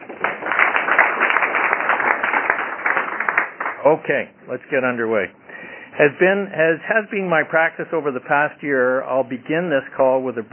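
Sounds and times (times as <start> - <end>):
quick round of applause: 0.0 - 4.0
speech: 3.8 - 5.4, 6.0 - 10.5.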